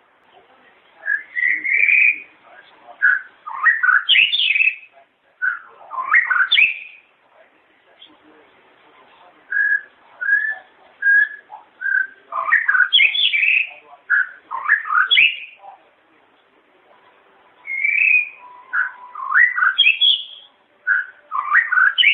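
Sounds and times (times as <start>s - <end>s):
long-tailed shrike chattering and whistling: 1.0s - 7.1s, 9.5s - 15.7s, 17.6s - 22.1s.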